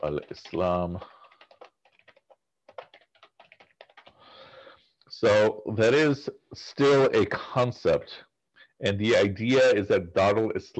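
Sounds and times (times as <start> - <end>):
speech: 0.0 - 1.2, 5.2 - 10.7
typing on a computer keyboard: 0.0 - 4.2.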